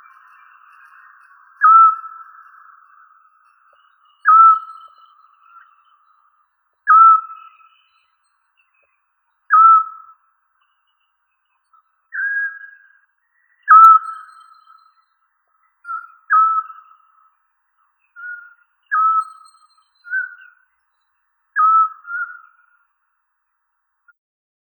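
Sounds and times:
Otus scops: 0.0s - 8.8s, 9.5s - 11.0s, 11.7s - 15.2s, 15.8s - 17.3s, 18.1s - 20.7s, 21.6s - 22.9s.

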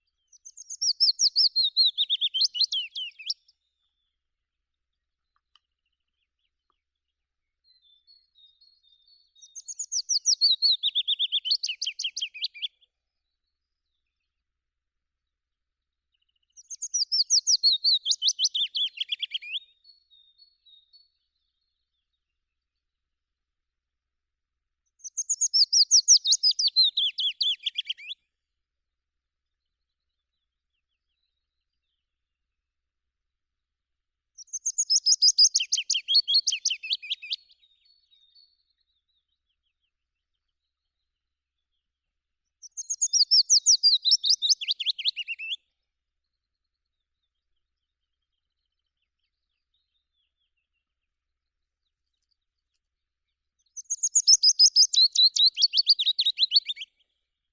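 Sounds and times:
Phylloscopus trochilus willow warbler singing: 0.3s - 3.5s, 7.6s - 12.7s, 16.5s - 21.0s, 25.0s - 28.2s, 34.4s - 38.4s, 42.6s - 45.6s, 53.7s - 56.9s.

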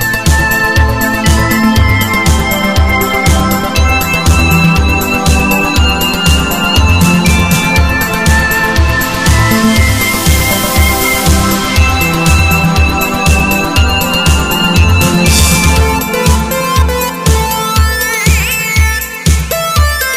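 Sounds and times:
space synth: 0.0s - 20.1s.

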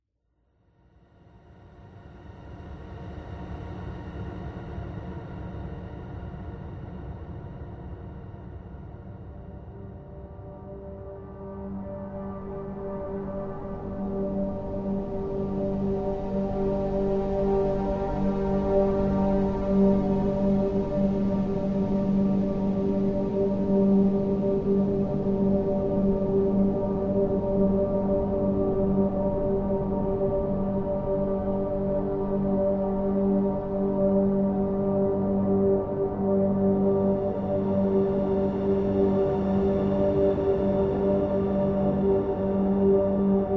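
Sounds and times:
ambient music: 9.8s - 43.5s.

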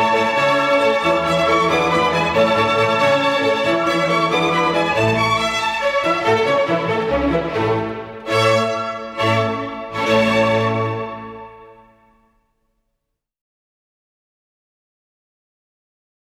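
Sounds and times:
clarinet concerto rondo allegro: 0.0s - 12.2s.

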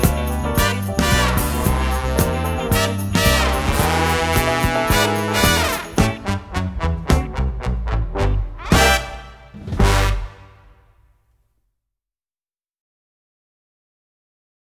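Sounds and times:
instrumental music: 0.0s - 10.8s.

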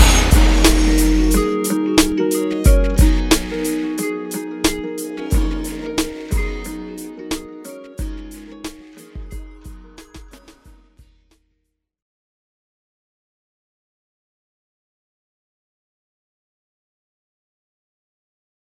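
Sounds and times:
instrumental music: 0.0s - 11.3s.

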